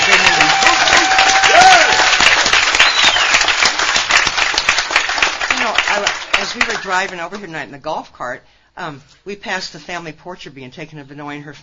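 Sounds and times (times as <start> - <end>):
audience applause: 0.0 - 6.9
speech: 6.6 - 11.6.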